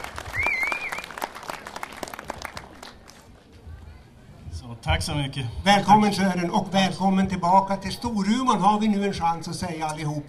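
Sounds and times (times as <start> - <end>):
audience applause: 0.0 - 3.3
sharp whistle: 0.3 - 1.1
speech: 4.8 - 10.2.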